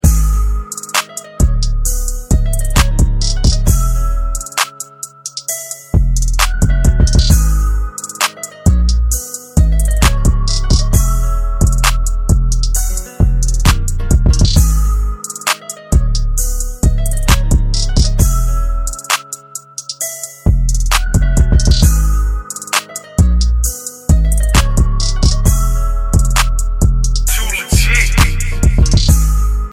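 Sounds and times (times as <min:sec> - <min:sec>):
instrumental ringtone: 0:00.7 - 0:29.7.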